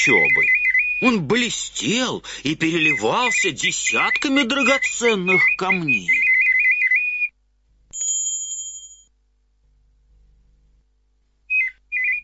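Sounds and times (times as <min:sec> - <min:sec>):
artificial mechanical nightingale singing: 0:00.0 - 0:01.2, 0:02.6 - 0:07.0, 0:11.5 - 0:12.2
speech: 0:00.0 - 0:06.3.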